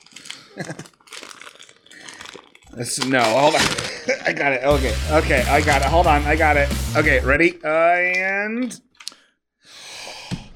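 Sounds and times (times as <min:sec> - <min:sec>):
plasticky wrapping paper tearing off a present: 0:00.0 - 0:06.2
speech: 0:00.6 - 0:01.0, 0:02.8 - 0:08.8
people laughing: 0:03.6 - 0:06.6.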